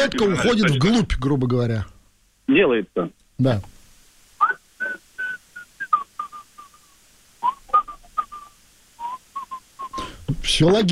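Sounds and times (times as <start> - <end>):
speech: 0.0 - 3.7, 10.4 - 10.8
person whistling a tune through a respirator: 4.4 - 6.8, 7.4 - 10.1.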